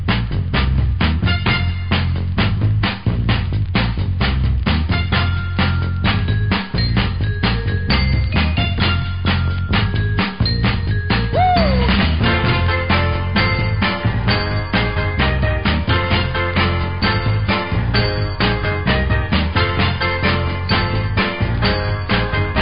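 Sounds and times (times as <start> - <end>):
instrumental music: 0.1 - 22.5.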